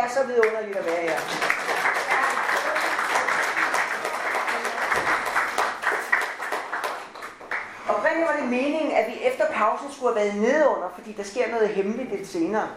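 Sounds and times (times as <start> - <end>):
speech: 0.0 - 2.0, 8.2 - 12.7
audience applause: 0.8 - 7.8.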